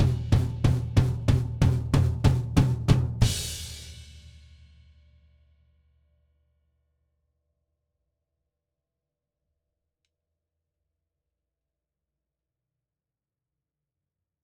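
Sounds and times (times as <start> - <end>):
drums: 0.0 - 5.0.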